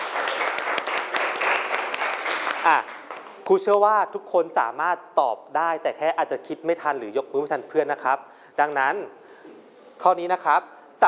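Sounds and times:
classroom applause: 0:00.0 - 0:03.5
speech: 0:02.6 - 0:02.9, 0:03.5 - 0:09.2, 0:10.0 - 0:11.0.

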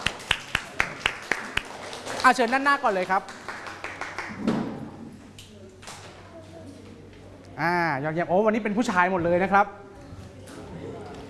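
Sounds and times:
classroom clapping in a steady rhythm: 0:00.0 - 0:04.4
speech: 0:02.2 - 0:03.4, 0:07.6 - 0:09.8.

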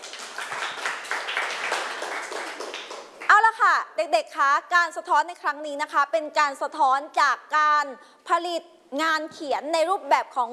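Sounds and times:
classroom applause for a student group: 0:00.0 - 0:03.3
speech: 0:03.7 - 0:10.5.

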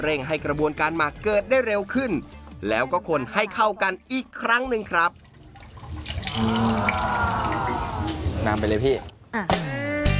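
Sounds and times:
speech: 0:00.0 - 0:05.2, 0:06.4 - 0:07.6, 0:08.4 - 0:09.8
water poured into a coconut ferment mixture: 0:04.1 - 0:09.1.

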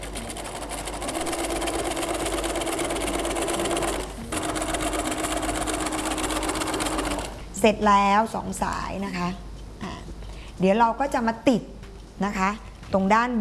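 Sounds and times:
sewing machine stitching a folded pre-ironed fabric strip: 0:00.0 - 0:07.4
speech: 0:07.6 - 0:09.9, 0:10.6 - 0:13.3.

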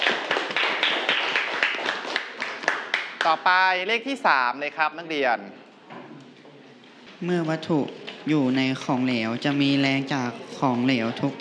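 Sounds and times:
classroom students clapping: 0:00.0 - 0:03.5
speech: 0:03.3 - 0:05.6, 0:07.2 - 0:11.3.

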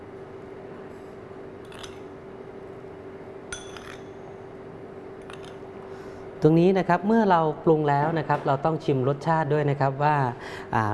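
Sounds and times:
spoon scooping sugar: 0:03.5 - 0:04.1
speech: 0:06.4 - 0:10.9.

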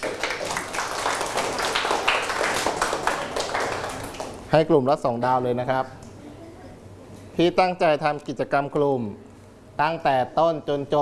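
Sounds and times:
group clapping: 0:00.0 - 0:04.5
speech: 0:04.5 - 0:06.0, 0:07.4 - 0:11.0.

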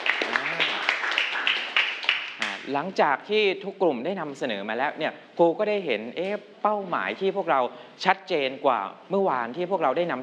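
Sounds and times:
classroom applause for a presenting group: 0:00.0 - 0:02.6
speech: 0:02.7 - 0:10.2.

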